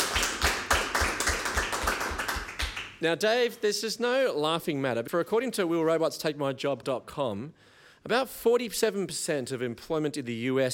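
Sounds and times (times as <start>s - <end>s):
audience applause: 0.0s - 3.0s
speech: 3.0s - 10.7s.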